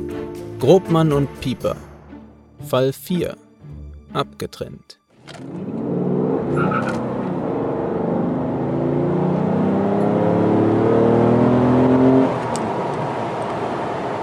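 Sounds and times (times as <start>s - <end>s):
speech: 0.7s - 1.9s, 2.7s - 3.4s, 4.2s - 5.7s, 6.5s - 7.2s
twelve-cylinder Mercedes car engine gurgling and revving: 5.2s - 14.2s.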